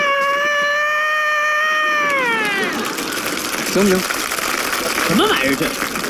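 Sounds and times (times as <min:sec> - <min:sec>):
person imitating a rooster crowing: 0:00.0 - 0:02.9
speech: 0:03.7 - 0:04.2, 0:05.1 - 0:06.0.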